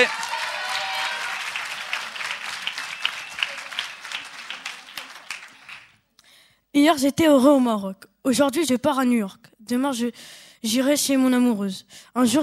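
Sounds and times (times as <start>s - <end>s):
audience applause: 0.0s - 6.0s
speech: 6.8s - 12.4s.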